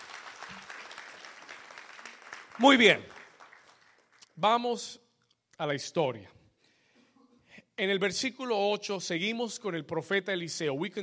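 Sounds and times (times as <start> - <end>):
audience applauding: 0.0 - 4.4
speech: 2.6 - 3.1, 4.4 - 5.0, 5.6 - 6.4, 7.8 - 11.0.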